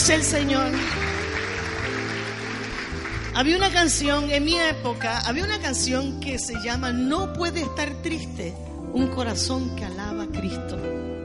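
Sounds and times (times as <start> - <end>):
speech: 0.0 - 1.1, 3.4 - 11.0
audience applauding: 0.0 - 4.3.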